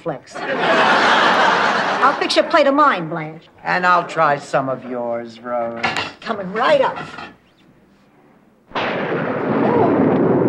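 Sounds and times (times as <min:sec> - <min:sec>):
speech: 0:00.0 - 0:01.3, 0:02.0 - 0:07.4
laughter: 0:00.4 - 0:04.6
thunder during a thunderstorm: 0:08.7 - 0:10.4.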